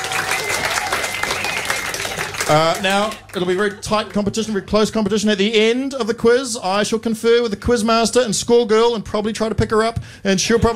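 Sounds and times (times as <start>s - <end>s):
audience applause at a quiz night: 0.0s - 3.9s
speech: 2.5s - 10.7s.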